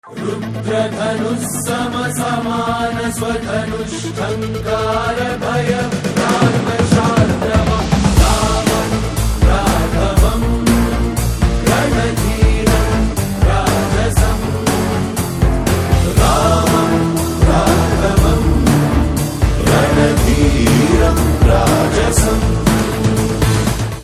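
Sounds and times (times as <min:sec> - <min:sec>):
background theme music ringtone: 0:00.0 - 0:24.0.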